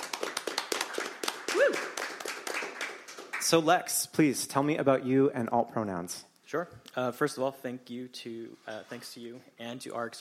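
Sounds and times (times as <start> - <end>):
small crowd applauding: 0.0 - 3.6
short rising-and-falling whoop or whistle: 1.5 - 1.9
speech: 1.6 - 2.0, 3.5 - 10.1.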